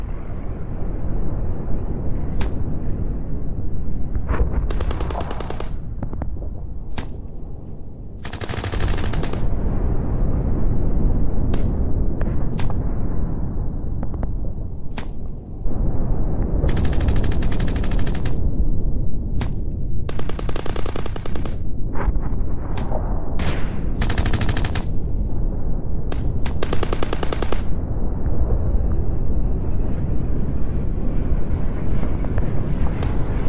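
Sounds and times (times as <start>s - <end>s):
explosions in battle: 0.0s - 7.7s, 8.6s - 33.4s
gunfire in battle: 4.7s - 5.9s, 8.2s - 9.6s, 16.6s - 18.4s, 19.4s - 21.6s, 26.1s - 27.8s.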